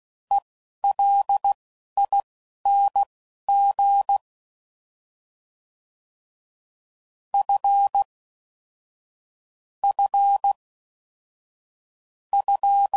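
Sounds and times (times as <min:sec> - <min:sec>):
morse code beeps at 10 WPM: 0:00.3 - 0:04.2, 0:07.4 - 0:08.1, 0:12.4 - 0:12.9.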